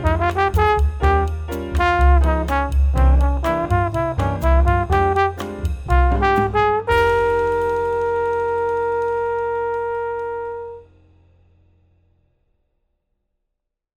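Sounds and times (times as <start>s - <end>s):
tenor trombone playing Latin music: 0.0s - 11.0s.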